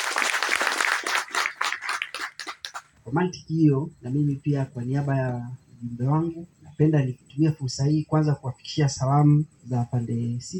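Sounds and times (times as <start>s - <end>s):
audience applause: 0.0s - 2.9s
speech: 3.1s - 10.5s.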